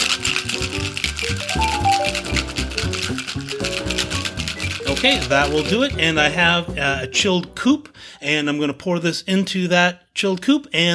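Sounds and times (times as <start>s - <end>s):
ice rattling inside a cocktail shaker: 0.0s - 6.4s
music: 0.0s - 8.4s
speech: 5.0s - 10.9s.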